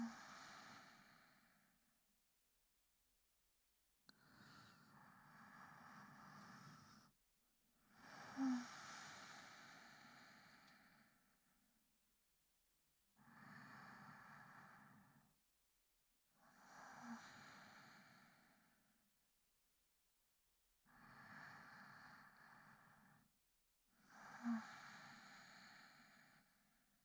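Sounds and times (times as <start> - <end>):
sleep breathing recorded with binaural microphone: 0.0 - 1.9, 4.1 - 7.2, 7.8 - 11.5, 13.2 - 15.4, 16.4 - 19.0, 20.8 - 23.3, 24.1 - 26.9.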